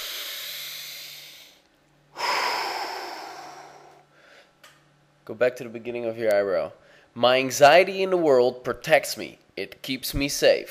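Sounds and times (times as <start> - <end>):
deep breath during a tapping exercise: 0.0 - 4.6, 6.8 - 7.2
speech: 5.3 - 10.6.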